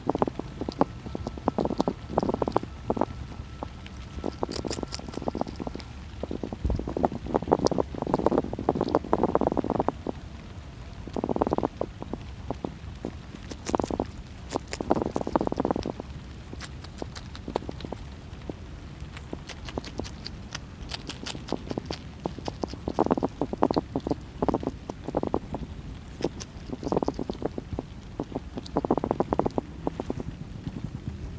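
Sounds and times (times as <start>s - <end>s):
hedgehog: 0.0s - 10.2s, 11.0s - 31.3s.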